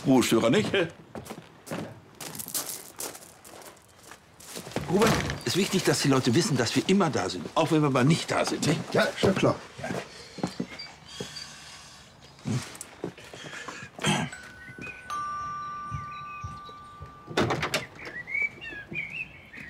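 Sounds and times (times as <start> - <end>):
speech: 0.0 - 1.4, 4.9 - 10.1
doorbell ringing: 14.2 - 18.1.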